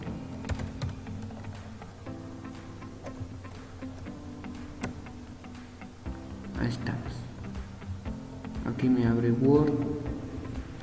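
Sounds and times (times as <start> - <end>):
computer keyboard typing into a search box: 0.3 - 1.6
speech: 6.6 - 7.3, 8.7 - 10.1.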